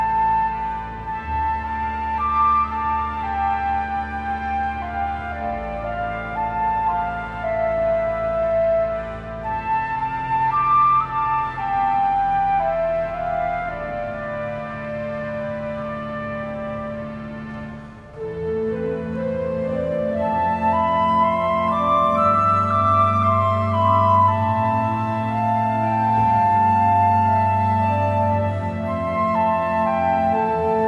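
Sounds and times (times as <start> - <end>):
flute: 0.0 - 30.8.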